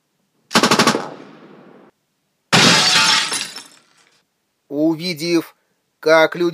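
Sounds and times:
short machine gun burst at windows: 0:00.5 - 0:01.2
speech: 0:04.7 - 0:06.5.

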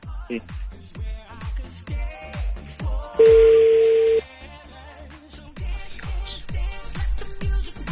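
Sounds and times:
bouncy rhythmic music bed: 0:00.0 - 0:07.9
telephone ringing tone of a call to a cellphone: 0:03.2 - 0:04.3.

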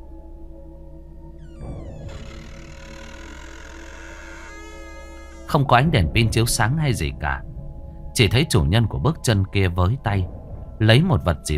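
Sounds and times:
wardrobe door slowly creaking open: 0:01.4 - 0:05.8
rasping hiss: 0:02.1 - 0:05.7
speech: 0:05.5 - 0:07.5, 0:08.2 - 0:11.5.

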